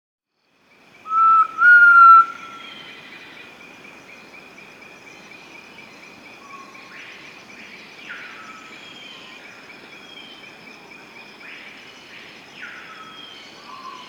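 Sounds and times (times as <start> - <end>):
Elusive antpitta Grallaria eludens whistled call in Peru: 1.1 - 2.8.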